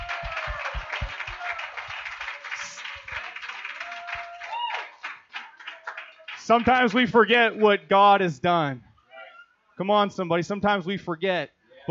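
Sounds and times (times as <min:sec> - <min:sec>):
audience clapping: 0:00.0 - 0:07.8
speech: 0:06.4 - 0:08.9, 0:09.8 - 0:11.8.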